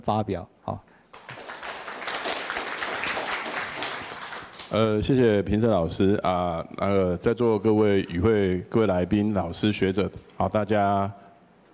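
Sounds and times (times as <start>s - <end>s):
speech: 0.0s - 0.9s, 4.7s - 11.2s
audience applause: 1.1s - 4.8s.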